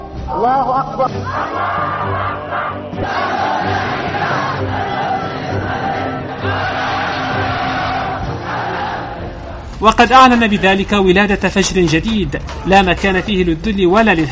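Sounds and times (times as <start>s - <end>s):
speech: 0.3s - 3.4s, 9.8s - 14.3s
large crowd shouting a slogan in unison: 1.2s - 9.8s.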